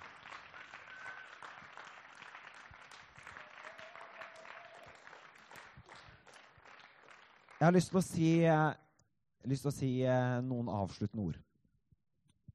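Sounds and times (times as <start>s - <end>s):
audience applauding a panel: 0.0s - 8.0s
speech: 7.6s - 8.8s, 9.4s - 11.5s.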